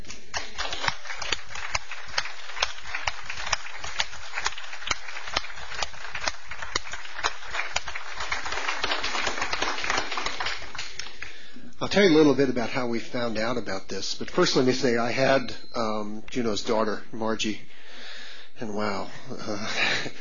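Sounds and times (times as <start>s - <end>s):
audience applause: 0.0s - 11.4s
speech: 11.9s - 17.7s, 18.6s - 20.1s.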